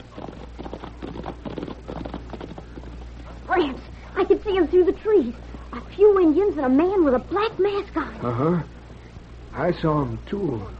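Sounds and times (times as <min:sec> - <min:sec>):
horses' hooves clip-clopping: 0:00.0 - 0:03.2
speech: 0:03.6 - 0:08.8, 0:09.6 - 0:10.7.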